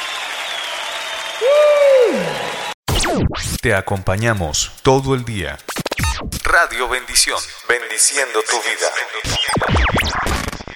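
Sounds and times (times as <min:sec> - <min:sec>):
audience applauding: 0:00.0 - 0:02.8
speech: 0:03.6 - 0:10.5.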